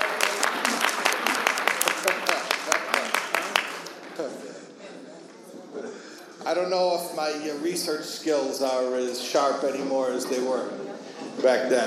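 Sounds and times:
applause: 0:00.0 - 0:04.4
speech: 0:06.5 - 0:10.8, 0:11.4 - 0:11.8.

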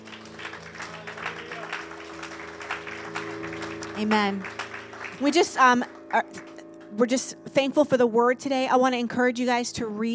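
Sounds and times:
audience applause: 0:00.0 - 0:06.6
speech: 0:04.0 - 0:04.6, 0:05.2 - 0:10.1.

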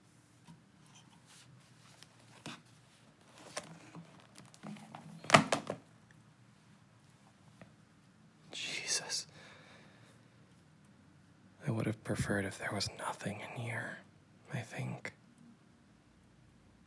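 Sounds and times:
quiet handling and faint rustles: 0:00.4 - 0:05.8
box opening thunk: 0:04.9 - 0:05.8
speech: 0:11.8 - 0:15.2.

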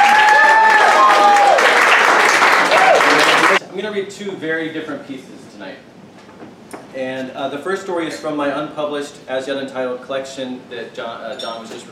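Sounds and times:
audience applause at a book reading: 0:00.0 - 0:03.6
speech: 0:04.0 - 0:11.9.

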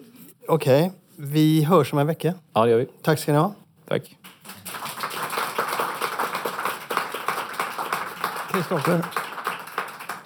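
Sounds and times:
speech: 0:00.5 - 0:04.3, 0:08.6 - 0:09.2
applause from a group: 0:04.2 - 0:10.2.

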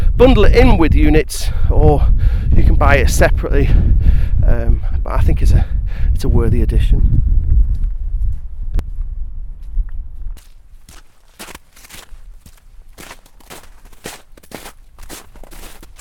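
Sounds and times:
speech: 0:00.2 - 0:07.4
footsteps crunching through snow: 0:09.6 - 0:15.9.

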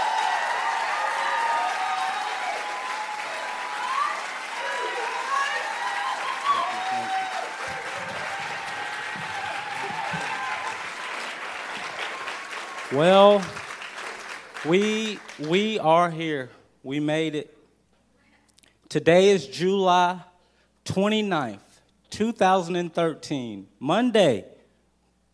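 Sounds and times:
audience applause: 0:00.0 - 0:15.7
speech: 0:12.9 - 0:13.6, 0:14.6 - 0:17.6, 0:18.9 - 0:20.3, 0:21.0 - 0:21.6, 0:22.2 - 0:24.5.

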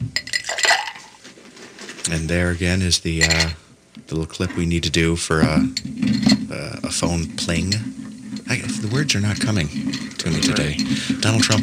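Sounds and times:
speech: 0:02.0 - 0:11.6
ice added to a bourbon cocktail: 0:05.8 - 0:11.6.

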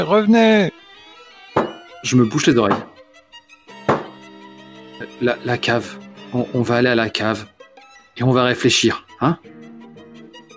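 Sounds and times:
speech: 0:00.0 - 0:00.8, 0:02.0 - 0:02.9, 0:05.2 - 0:07.5, 0:08.2 - 0:09.6
banging on a door: 0:01.6 - 0:01.9, 0:02.7 - 0:03.0, 0:03.8 - 0:04.2
droning musical tone: 0:03.7 - 0:07.3.

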